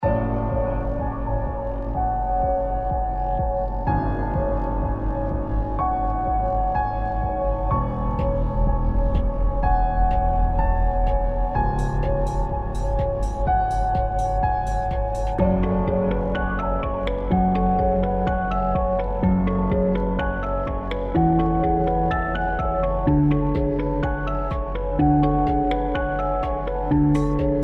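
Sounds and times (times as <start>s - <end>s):
spooky night club dance music loop: 0.0s - 27.6s.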